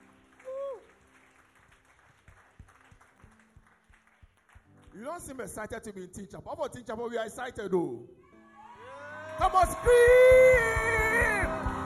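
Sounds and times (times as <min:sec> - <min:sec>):
audience clapping in welcome: 0:00.0 - 0:05.6, 0:09.1 - 0:11.8
speech: 0:05.0 - 0:08.2, 0:09.4 - 0:11.3.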